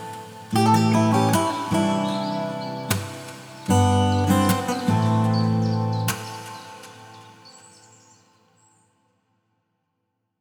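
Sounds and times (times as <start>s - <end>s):
classical guitar: 0.0s - 7.5s
nature sounds: 0.0s - 9.0s.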